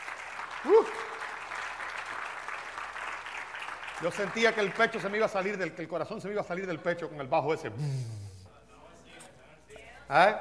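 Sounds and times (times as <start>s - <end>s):
crowd applause: 0.0s - 5.6s
speech: 0.6s - 1.1s, 4.0s - 8.2s, 10.1s - 10.4s.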